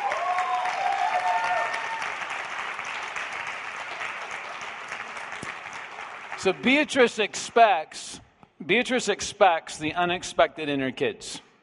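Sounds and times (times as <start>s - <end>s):
audience applause: 0.0s - 6.7s
speech: 6.4s - 11.4s.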